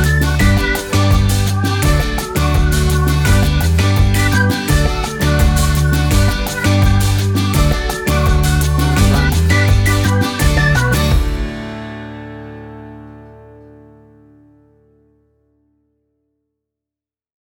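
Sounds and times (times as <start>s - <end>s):
calypso reggae fusion: 0.0s - 12.8s.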